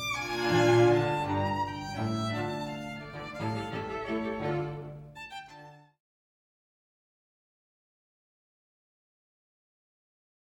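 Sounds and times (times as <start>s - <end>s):
minuet trio piece: 0.0s - 5.8s.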